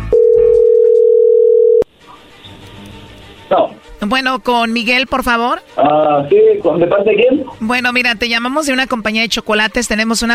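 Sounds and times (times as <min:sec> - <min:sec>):
telephone dial tone: 0:00.1 - 0:01.9
speech: 0:03.5 - 0:10.3.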